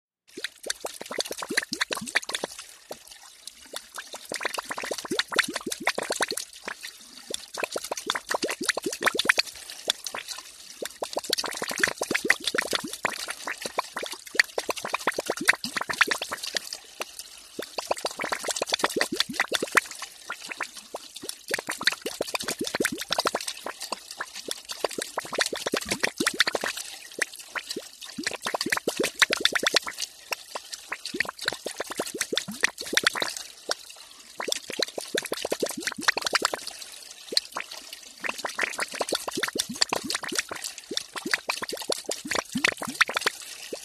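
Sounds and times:
hose blurping and gurgling liquid indoors: 0:00.3 - 0:43.8.

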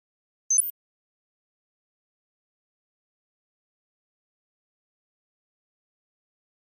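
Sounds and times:
high-frequency shimmering flash beep: 0:00.5 - 0:00.7.

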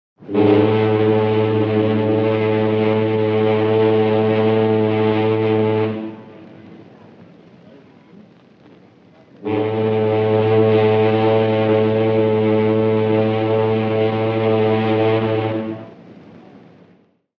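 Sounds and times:
British cruise liner horn blasts, deep low tone: 0:00.2 - 0:07.0, 0:09.4 - 0:16.2.

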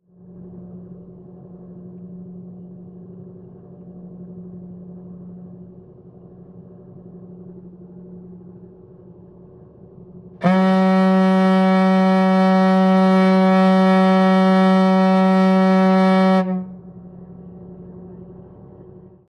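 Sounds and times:
ferry boat engine drone: 0:00.0 - 0:19.2
ferry boat horn long blast heard from interior: 0:10.4 - 0:17.6.

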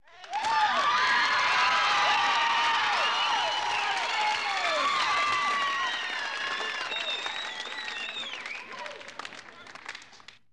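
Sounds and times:
indoor crowd: 0:00.0 - 0:10.5.

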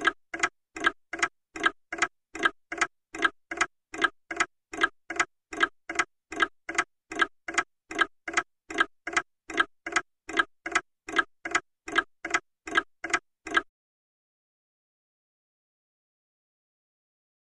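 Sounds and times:
mantel clock ticking: 0:00.0 - 0:13.7.

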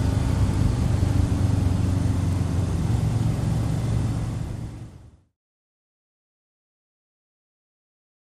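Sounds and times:
sports car engine idling and accelerating: 0:00.0 - 0:05.3.

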